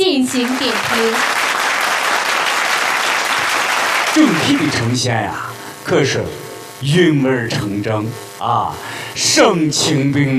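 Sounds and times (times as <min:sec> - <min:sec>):
speech: 0:00.0 - 0:01.4, 0:04.2 - 0:10.3
audience applause at a singing contest: 0:00.0 - 0:05.0.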